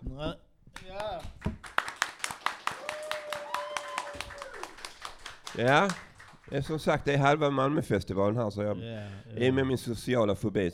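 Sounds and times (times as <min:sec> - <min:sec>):
speech: 0:00.2 - 0:01.3, 0:05.6 - 0:10.7
audience applause: 0:01.6 - 0:06.7.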